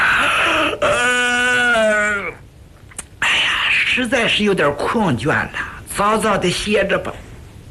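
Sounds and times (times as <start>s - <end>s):
man imitating a yawn: 0.0s - 2.4s
speech: 4.0s - 7.3s.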